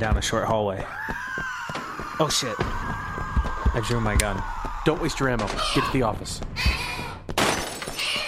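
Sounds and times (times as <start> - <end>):
speech: 0.0 - 1.5, 2.2 - 3.0, 3.8 - 6.8
glass shattering: 7.4 - 8.1.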